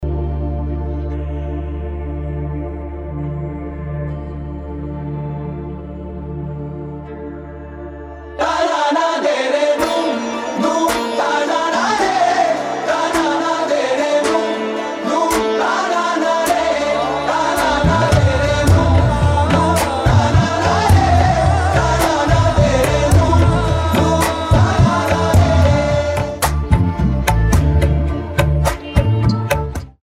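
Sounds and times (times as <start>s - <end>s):
karaoke song: 0.0s - 30.0s.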